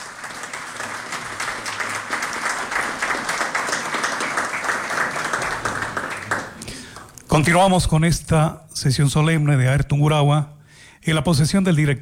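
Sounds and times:
audience applause: 0.0s - 7.2s
speech: 7.3s - 12.0s.

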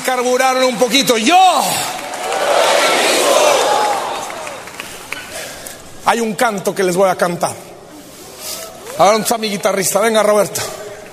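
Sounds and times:
speech: 0.1s - 3.2s, 6.1s - 7.7s, 9.0s - 10.7s
large crowd shouting back: 2.0s - 4.8s.

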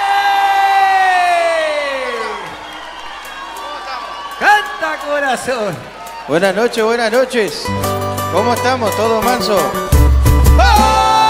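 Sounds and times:
audience applause: 0.0s - 7.7s
audience cheering: 0.0s - 7.8s, 10.4s - 11.2s
speech: 5.1s - 9.8s.

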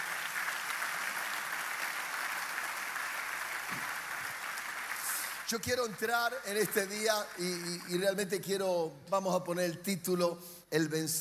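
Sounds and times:
audience applause: 0.0s - 8.2s
speech: 5.5s - 11.1s.

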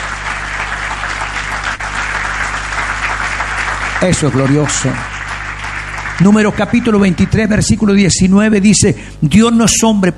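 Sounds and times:
loud applause from a large audience: 0.0s - 7.8s
speech: 4.0s - 5.1s, 6.2s - 10.1s.

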